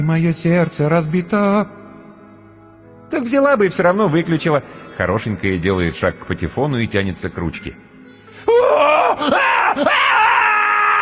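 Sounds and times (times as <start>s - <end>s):
speech: 0.0s - 1.8s, 3.1s - 7.9s, 8.6s - 10.3s
man screaming loudly: 8.5s - 11.0s.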